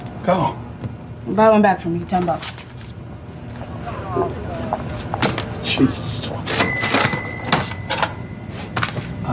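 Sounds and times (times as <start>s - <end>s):
speech: 0.2s - 2.7s, 4.2s - 4.7s, 5.7s - 6.4s
cash register ringing: 6.4s - 9.2s
cash register drawer closing: 6.5s - 8.3s.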